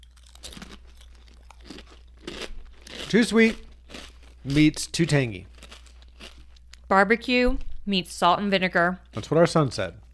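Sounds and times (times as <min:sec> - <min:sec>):
crunching thick kettle-style potato chips: 0:00.0 - 0:06.9, 0:09.1 - 0:09.6
speech: 0:03.1 - 0:03.7, 0:04.4 - 0:05.5, 0:06.9 - 0:10.0.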